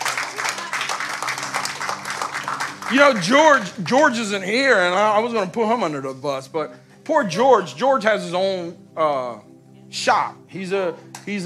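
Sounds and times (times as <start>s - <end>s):
audience applause: 0.0s - 3.7s
speech: 2.9s - 11.4s.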